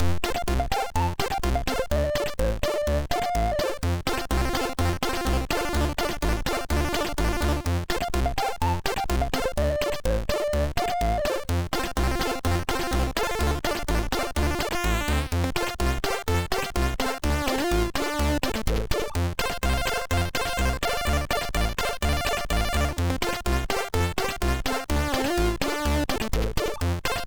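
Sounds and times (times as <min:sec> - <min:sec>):
chiptune music on MOS6581R2 chip: 0:00.2 - 0:27.2.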